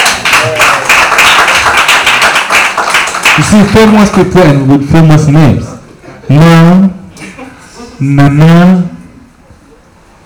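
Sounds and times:
hand clapping: 0:00.0 - 0:04.3
speech: 0:03.5 - 0:05.7, 0:06.3 - 0:07.0, 0:08.0 - 0:09.0.

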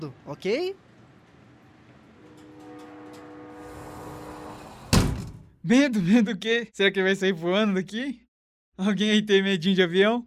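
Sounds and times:
speech: 0:00.0 - 0:00.9, 0:05.6 - 0:08.2, 0:08.8 - 0:10.2
corridor door being closed: 0:02.3 - 0:05.5.

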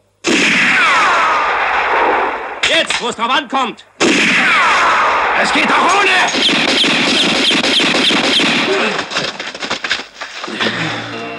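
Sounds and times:
pistol shot fired by hacking down the hammer: 0:00.2 - 0:03.0, 0:04.0 - 0:09.1
harsh sustained roar with downward-sliding whining tone: 0:00.3 - 0:02.5, 0:04.0 - 0:09.0
speech: 0:03.0 - 0:09.3.

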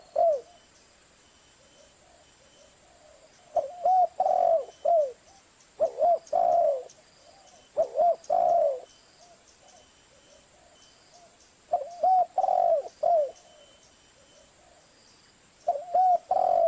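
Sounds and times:
spotted dove cooing: 0:00.0 - 0:00.6, 0:01.6 - 0:14.9, 0:15.6 - 0:16.6.

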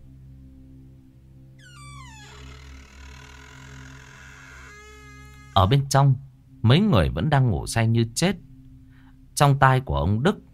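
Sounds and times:
door slowly opening: 0:01.6 - 0:05.9
speech: 0:05.6 - 0:08.5, 0:09.4 - 0:10.5.

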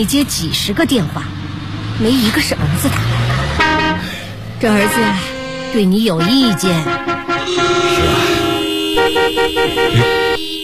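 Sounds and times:
speech: 0:00.0 - 0:01.4, 0:02.0 - 0:03.6, 0:04.6 - 0:07.8, 0:09.0 - 0:10.4
engines rumbling in a traffic jam: 0:00.0 - 0:10.6
car horns honking in a traffic jam at a village entrance: 0:02.2 - 0:10.6.

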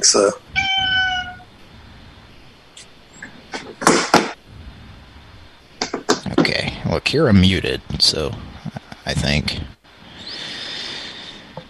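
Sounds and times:
speech: 0:00.0 - 0:00.5, 0:06.9 - 0:09.8
scratchy noise bursts: 0:00.0 - 0:11.6
cat meowing: 0:00.5 - 0:01.5.

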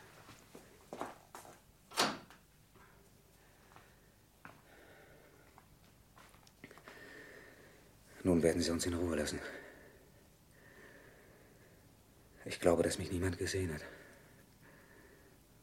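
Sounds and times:
door closing: 0:01.9 - 0:02.4
speech: 0:08.2 - 0:09.7, 0:12.6 - 0:14.0.

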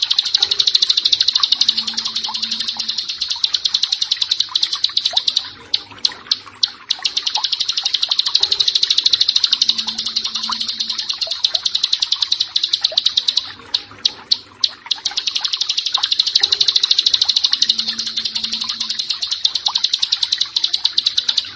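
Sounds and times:
bar-winged prinia song: 0:00.0 - 0:21.5.

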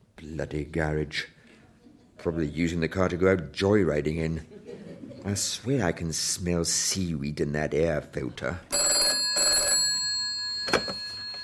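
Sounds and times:
speech: 0:00.4 - 0:01.4, 0:02.2 - 0:04.6, 0:05.2 - 0:08.8
laughter: 0:04.3 - 0:05.6
telephone ringing with a metallic bell tone: 0:08.7 - 0:11.4.

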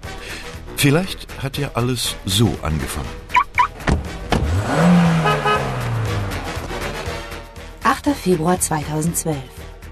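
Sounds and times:
speech: 0:00.8 - 0:03.2, 0:08.1 - 0:09.9
car driving away: 0:03.4 - 0:07.5.

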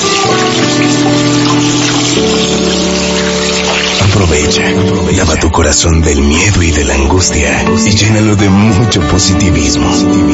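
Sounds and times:
water running from a tap for hand washing: 0:00.0 - 0:05.1
speech: 0:04.6 - 0:10.3.

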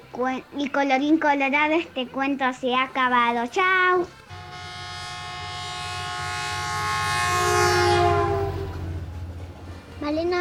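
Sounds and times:
speech: 0:00.1 - 0:04.2, 0:10.1 - 0:10.3
train horn sounding over a moving train: 0:04.3 - 0:09.3
rhythmic low rumble of train wheels: 0:08.0 - 0:10.3.

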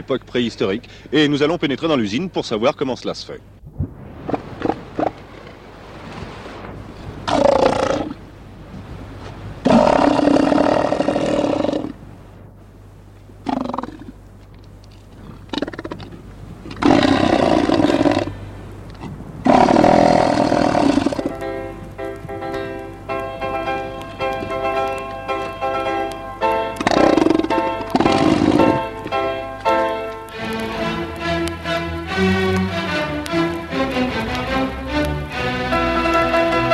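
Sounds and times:
speech: 0:00.0 - 0:03.6
steady low rumble: 0:00.0 - 0:36.7
elephant seals roaring on a beach: 0:04.2 - 0:05.6, 0:07.0 - 0:08.2, 0:09.6 - 0:12.0, 0:13.4 - 0:14.2, 0:15.1 - 0:21.4, 0:26.6 - 0:29.2.

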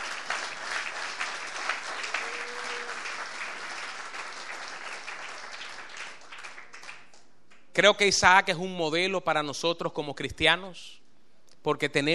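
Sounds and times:
audience applause: 0:00.0 - 0:07.2
speech: 0:07.8 - 0:11.0, 0:11.6 - 0:12.1.

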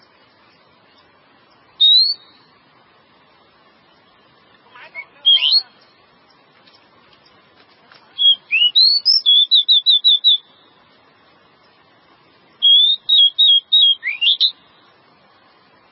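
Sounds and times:
Java sparrow song of clear slurred whistles and chips: 0:01.8 - 0:02.5, 0:08.2 - 0:10.5, 0:12.6 - 0:14.6.

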